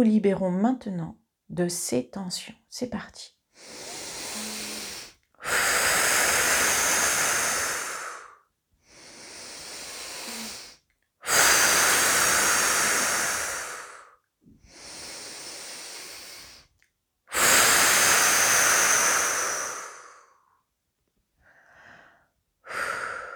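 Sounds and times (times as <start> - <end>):
speech: 0.0 - 3.9
slow deep breathing during a relaxation exercise: 3.6 - 16.7, 17.3 - 20.6, 21.4 - 23.3.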